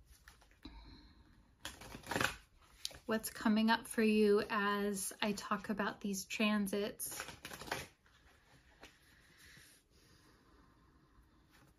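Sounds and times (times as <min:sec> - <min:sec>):
deck of cards being shuffled: 0:01.6 - 0:03.1, 0:07.1 - 0:09.0
speech: 0:03.1 - 0:07.4.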